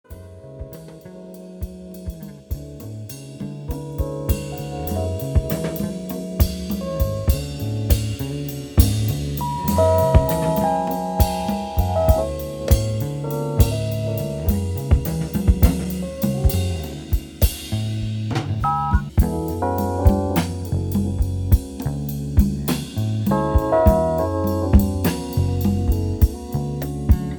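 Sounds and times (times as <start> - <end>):
jazz music: 0.1 - 27.3.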